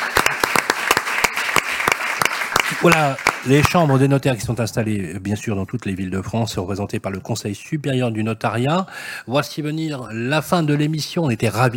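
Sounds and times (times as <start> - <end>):
audience applause: 0.0 - 4.2
speech: 2.8 - 11.7.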